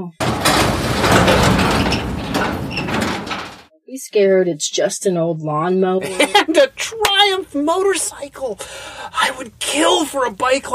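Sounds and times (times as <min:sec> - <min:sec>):
speech: 0:00.0 - 0:00.9, 0:03.9 - 0:10.7
garage door rolling open: 0:00.2 - 0:03.7
faint high squeaks of the garage door: 0:00.4 - 0:03.7.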